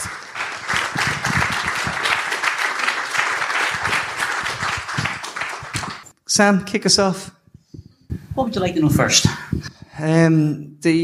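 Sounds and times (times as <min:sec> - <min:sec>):
audience applause welcoming speakers on stage at the Sugar Club: 0:00.0 - 0:06.1
speech: 0:06.4 - 0:07.4, 0:08.4 - 0:11.0.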